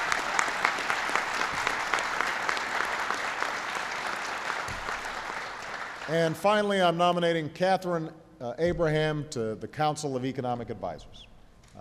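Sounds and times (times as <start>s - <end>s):
audience applause: 0.0s - 6.4s
speech: 6.1s - 11.7s.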